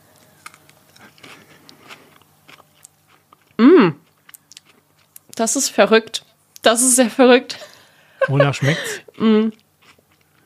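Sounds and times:
biting and chewing a fresh leaf: 0:00.1 - 0:05.4, 0:09.0 - 0:10.4
speech: 0:03.6 - 0:04.0, 0:05.4 - 0:09.6
laughter: 0:08.2 - 0:09.2.

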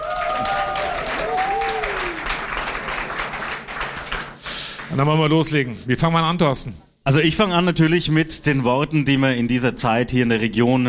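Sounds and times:
audience applause for a men's choir: 0:00.0 - 0:05.0
speech: 0:05.0 - 0:10.8.

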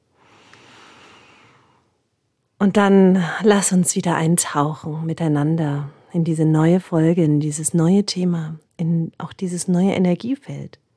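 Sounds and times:
deep breath: 0:00.1 - 0:02.0
speech: 0:02.6 - 0:10.8.

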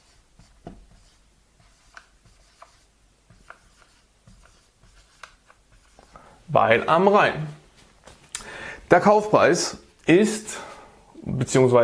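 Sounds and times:
pen writing on paper: 0:00.0 - 0:06.1
speech: 0:06.5 - 0:07.6, 0:08.9 - 0:10.7, 0:11.4 - 0:11.8.

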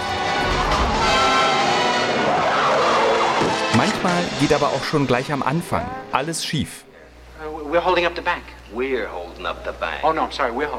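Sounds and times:
car chase with skidding tires: 0:00.0 - 0:05.3
speech: 0:04.4 - 0:06.9, 0:07.7 - 0:10.7.

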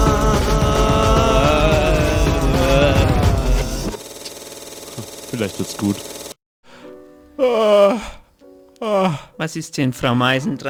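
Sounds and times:
person yawning: 0:00.0 - 0:03.9, 0:07.4 - 0:09.3
speech: 0:05.6 - 0:06.1, 0:08.8 - 0:10.6.

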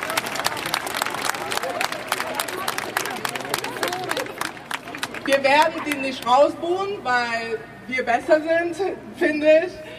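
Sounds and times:
crowd at a gathering applauding: 0:00.0 - 0:05.9
speech: 0:05.3 - 0:09.9.

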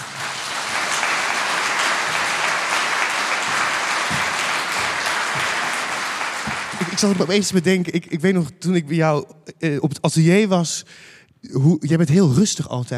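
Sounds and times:
audience applause: 0:00.0 - 0:08.0
speech: 0:07.0 - 0:12.9.

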